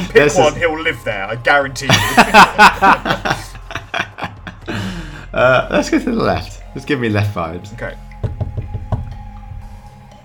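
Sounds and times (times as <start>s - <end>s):
speech: 0.1s - 3.4s, 5.4s - 8.1s
laughter: 1.9s - 4.9s
knocking on a door: 8.2s - 9.6s.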